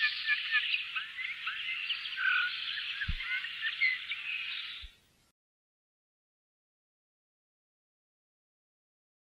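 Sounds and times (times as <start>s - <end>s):
Eurasian bullfinch whistled call notes: 0.0s - 4.9s.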